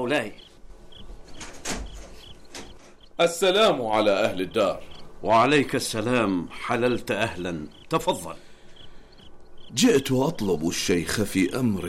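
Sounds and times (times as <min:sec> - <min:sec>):
speech: 0:00.0 - 0:00.5, 0:03.2 - 0:08.4, 0:09.7 - 0:11.8
door scraping and creaking as it is opened to let a guest in: 0:00.9 - 0:03.1.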